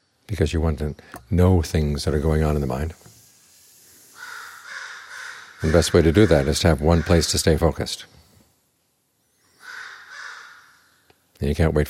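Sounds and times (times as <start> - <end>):
quiet hiss: 0.0 - 11.8
speech: 0.3 - 3.1, 5.6 - 8.2, 11.4 - 11.8
crows cawing: 4.0 - 7.4, 9.5 - 11.2.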